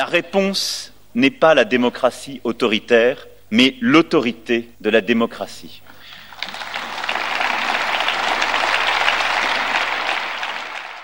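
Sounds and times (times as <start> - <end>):
speech: 0.0 - 5.9
audience applause after speech: 6.1 - 11.0.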